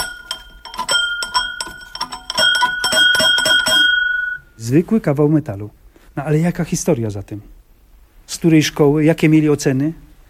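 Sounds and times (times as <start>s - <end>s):
school bell ringing: 0.0s - 4.6s
speech: 4.6s - 7.6s, 8.3s - 10.0s.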